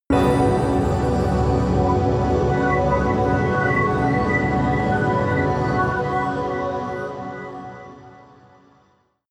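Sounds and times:
whistle pad: 0:00.2 - 0:07.6.

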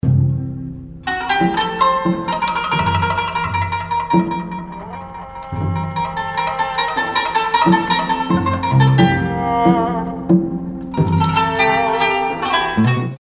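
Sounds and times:
oriental style music: 0:00.0 - 0:13.1.

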